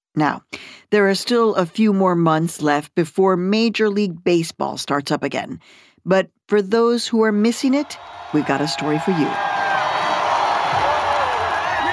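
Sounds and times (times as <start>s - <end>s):
speech: 0.2s - 9.6s
crowd cheering at Dodger Stadium at a 2018 World Series game: 7.6s - 11.9s.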